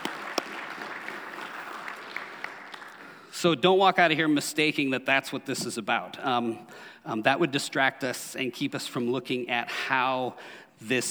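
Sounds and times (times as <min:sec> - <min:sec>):
audience applause for veterans: 0:00.0 - 0:03.3
speech: 0:03.4 - 0:11.0.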